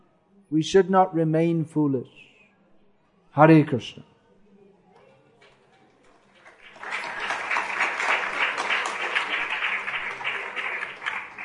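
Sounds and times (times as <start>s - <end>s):
speech: 0.5s - 2.2s, 3.4s - 4.1s
audience clapping: 6.2s - 11.4s.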